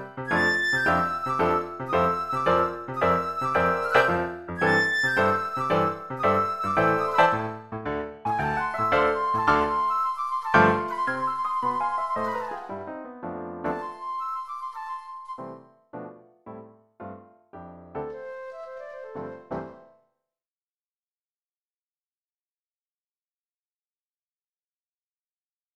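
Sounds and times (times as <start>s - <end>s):
solo flute music: 0.0s - 16.2s, 18.0s - 19.9s.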